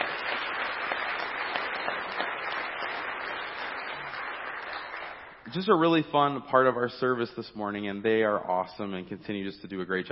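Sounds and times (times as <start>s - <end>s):
audience applause: 0.0s - 5.5s
speech: 5.5s - 10.1s.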